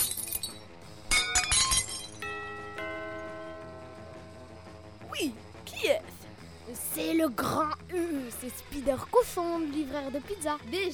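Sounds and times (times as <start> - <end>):
broken dish pieces clattering: 0.0 - 2.3
dishes smashing: 1.1 - 2.2
speech: 7.2 - 10.9.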